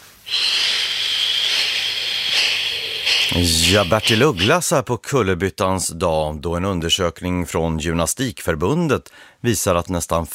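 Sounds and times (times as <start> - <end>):
forceful exhale during morning exercises: 0.0 - 4.5
speech: 3.3 - 10.3.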